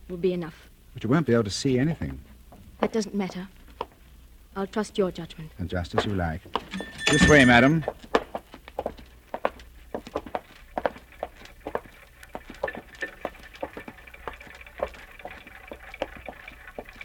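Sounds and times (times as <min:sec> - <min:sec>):
speech: 0:00.1 - 0:03.6, 0:04.6 - 0:08.1
more than 100 clocks ticking in a room: 0:05.8 - 0:08.0, 0:10.1 - 0:17.0.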